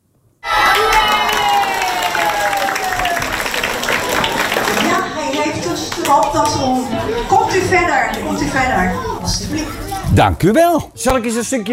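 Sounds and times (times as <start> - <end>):
children's loud applause and cheering: 0.4 - 6.2
speech: 6.3 - 11.7.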